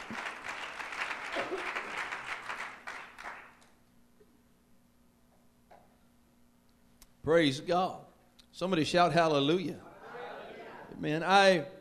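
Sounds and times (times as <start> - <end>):
audience clapping in praise: 0.0 - 3.8
speech: 7.3 - 8.0, 8.6 - 9.9, 11.0 - 11.8.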